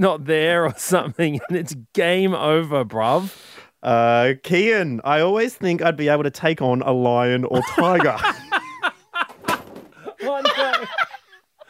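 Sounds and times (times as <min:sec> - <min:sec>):
speech: 0:00.0 - 0:08.4
loud breathy laughter: 0:07.6 - 0:11.6
chair bumping into a stand: 0:09.2 - 0:10.0.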